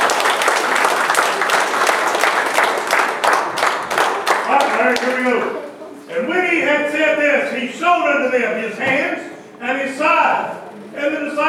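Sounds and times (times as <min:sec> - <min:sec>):
audience applause: 0:00.0 - 0:05.8
speech: 0:06.9 - 0:11.4.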